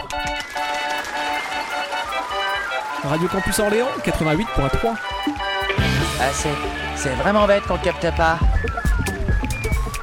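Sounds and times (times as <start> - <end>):
applause: 0.0 - 3.4
tonal drone: 0.5 - 8.8
speech: 3.0 - 8.9.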